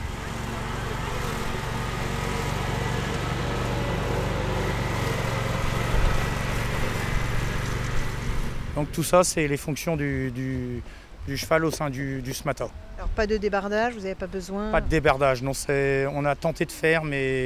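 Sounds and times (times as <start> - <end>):
rotary brush mulcher running: 0.0 - 11.1
speech: 8.8 - 17.4.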